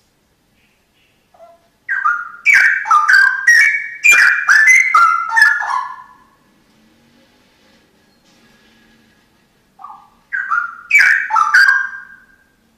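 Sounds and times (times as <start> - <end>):
Oriental magpie-robin song: 0.5 - 6.4, 9.8 - 12.6.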